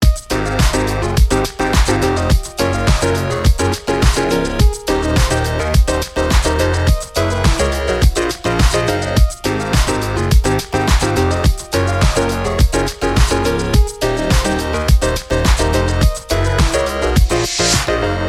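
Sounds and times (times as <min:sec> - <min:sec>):
chords: 0:00.0 - 0:18.2.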